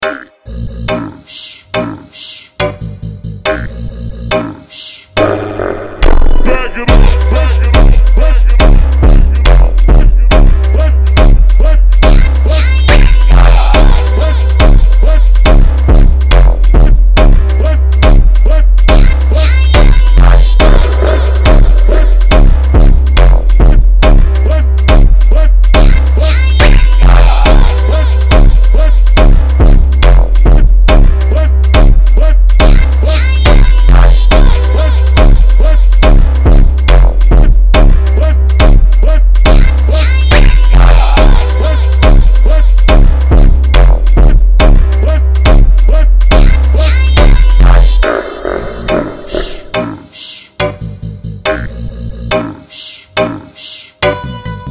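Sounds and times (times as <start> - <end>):
Brazilian funk music: 5.2 - 48.2, 54.0 - 54.6.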